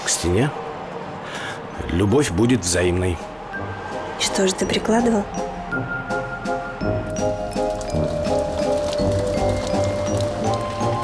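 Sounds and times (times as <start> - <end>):
speech: 0.2 - 0.7, 1.8 - 6.0
raindrops falling on the ground: 7.0 - 11.0.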